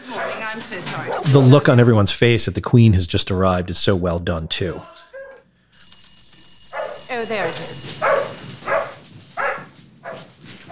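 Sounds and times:
corgis barking: 0:00.0 - 0:01.4, 0:06.7 - 0:07.0, 0:07.8 - 0:10.7
speech: 0:00.5 - 0:05.0, 0:07.1 - 0:08.3.

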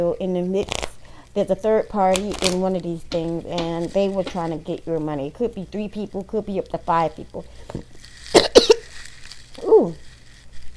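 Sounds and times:
speech: 0:00.0 - 0:08.6
person coughing hard and nearly choking: 0:08.4 - 0:08.9.

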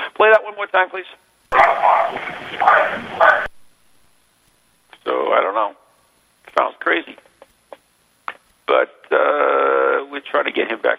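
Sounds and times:
steady hiss in an EVP recording: 0:00.0 - 0:10.9
speech: 0:00.3 - 0:03.4
dog-like barks in an EVP recording: 0:01.5 - 0:03.5.

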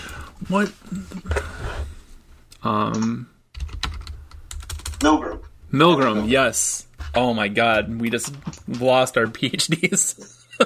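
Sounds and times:
speech: 0:00.4 - 0:01.6, 0:02.6 - 0:03.3, 0:05.0 - 0:10.6
typing on a computer keyboard to search Google: 0:02.9 - 0:05.0.

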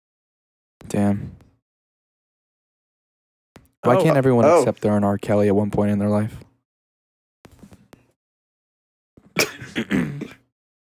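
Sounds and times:
speech: 0:01.0 - 0:01.4, 0:03.8 - 0:06.5
person clearing throat: 0:03.9 - 0:04.7, 0:09.4 - 0:10.4.

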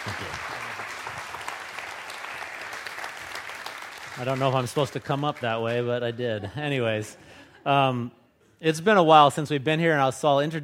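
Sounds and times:
church congregation applause welcoming a guest speaker: 0:00.0 - 0:05.9
speech: 0:04.2 - 0:10.6.

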